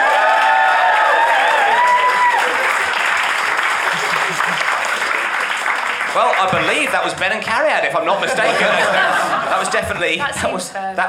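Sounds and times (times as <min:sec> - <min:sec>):
audience applause: 0:00.0 - 0:07.3
laughter: 0:03.8 - 0:05.2, 0:07.8 - 0:10.4
speech: 0:06.2 - 0:11.0.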